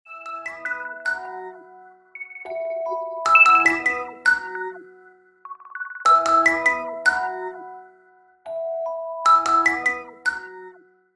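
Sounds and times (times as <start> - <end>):
iPhone attentive ringtone: 0.1 - 7.8, 8.5 - 10.9.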